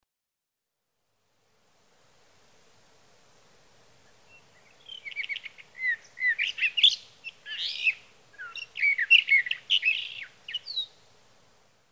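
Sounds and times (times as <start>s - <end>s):
sage thrasher singing a rapid stream of warbling notes: 4.6s - 10.9s.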